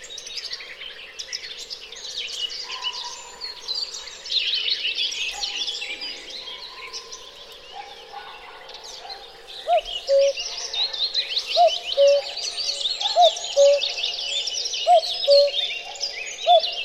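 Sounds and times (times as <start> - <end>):
songbird chorus twittering: 0.0 - 16.8
cuckoo calling: 9.6 - 10.4, 11.4 - 14.0, 14.8 - 15.8, 16.4 - 16.8.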